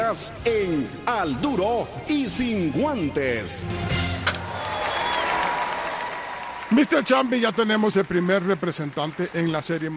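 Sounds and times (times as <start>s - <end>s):
speech: 0.1s - 4.2s, 6.7s - 9.9s
applause: 4.5s - 9.9s.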